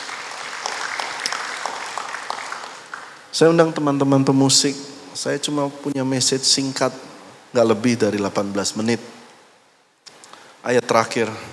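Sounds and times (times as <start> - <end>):
audience applause: 0.0 - 3.3
speech: 3.4 - 9.2, 10.6 - 11.5.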